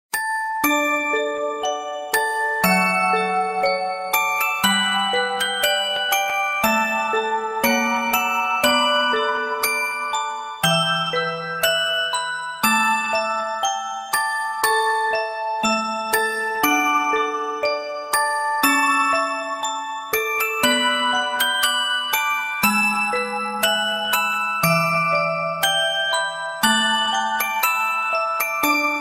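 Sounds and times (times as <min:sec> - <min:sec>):
music box: 0:00.1 - 0:29.0.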